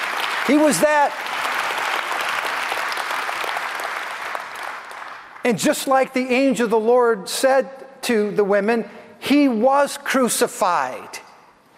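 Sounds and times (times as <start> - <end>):
audience applause: 0.0 - 5.4
speech: 0.5 - 1.3, 5.4 - 11.2.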